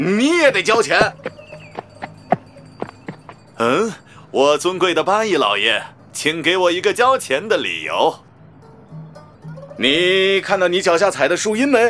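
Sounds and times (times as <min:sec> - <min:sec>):
speech: 0:00.0 - 0:01.4, 0:03.6 - 0:08.2, 0:09.8 - 0:11.8
donkey hooves clip-clopping: 0:00.2 - 0:03.9.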